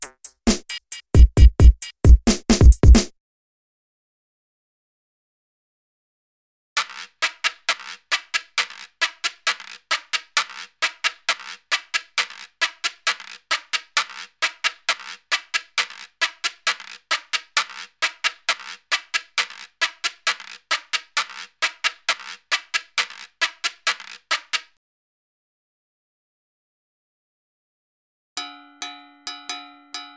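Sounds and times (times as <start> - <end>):
beats: 0.0 - 3.1, 6.8 - 24.8.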